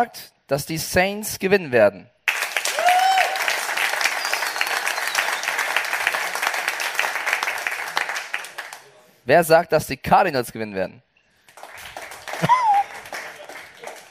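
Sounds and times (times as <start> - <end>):
speech: 0.0 - 2.2, 9.3 - 11.1
crowd applauding: 2.3 - 9.0, 11.4 - 14.0
cheer or whistle: 2.7 - 3.5, 4.1 - 5.7
laughter: 12.2 - 14.0.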